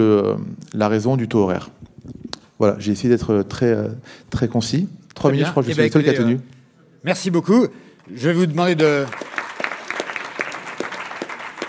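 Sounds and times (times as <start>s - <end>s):
speech: 0.0s - 1.8s, 2.6s - 9.3s
audience applause for presenters after short talks: 8.1s - 11.6s.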